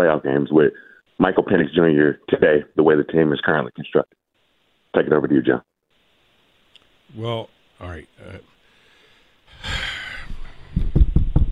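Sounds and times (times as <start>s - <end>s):
speech: 0.0s - 4.2s, 5.0s - 5.7s, 7.1s - 8.5s
breathy rush of air: 8.6s - 11.0s
knocking on a wooden surface: 10.8s - 11.5s.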